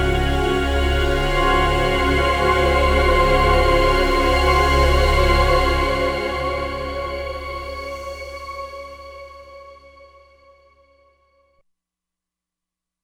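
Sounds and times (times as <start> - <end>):
motion synthesizer pad: 0.0 - 10.2.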